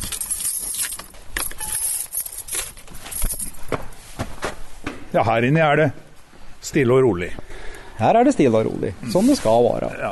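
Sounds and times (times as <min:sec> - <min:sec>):
keys unlocking a door: 0:00.0 - 0:03.6
speech: 0:05.1 - 0:06.0, 0:06.6 - 0:07.4, 0:08.0 - 0:10.1.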